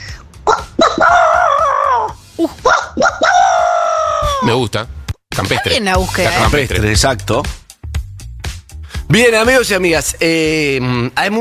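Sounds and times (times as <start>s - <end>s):
person imitating a rooster crowing: 0.5s - 4.4s
speech: 4.5s - 7.6s, 9.1s - 11.3s.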